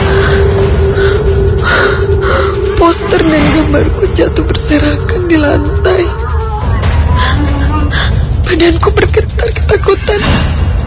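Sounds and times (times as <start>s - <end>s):
shaky frightened breathing with gasping inhales: 0.0s - 2.8s, 6.9s - 8.4s
speech: 3.2s - 6.2s, 8.5s - 10.4s.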